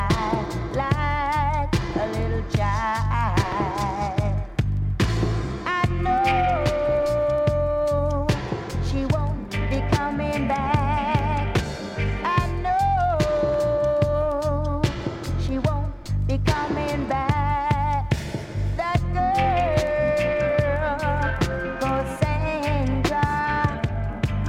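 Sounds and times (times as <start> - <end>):
drum and bass music: 0.0 - 24.4.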